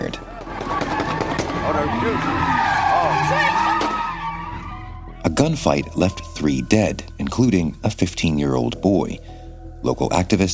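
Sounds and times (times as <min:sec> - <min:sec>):
sports car tires skidding and squealing while spinning donuts: 0:00.4 - 0:05.0
speech: 0:01.8 - 0:02.6, 0:05.3 - 0:10.5.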